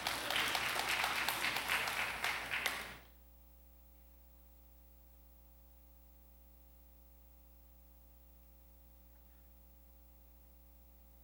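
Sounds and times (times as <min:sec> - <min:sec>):
crowd applauding: 0:00.0 - 0:03.1.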